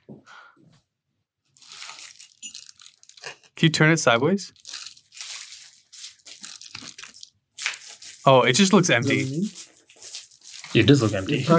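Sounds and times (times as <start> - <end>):
crinkly handling of a package being pulled out: 1.5 - 3.5, 4.5 - 11.5
speech: 3.6 - 4.6, 8.2 - 9.6, 10.7 - 11.5.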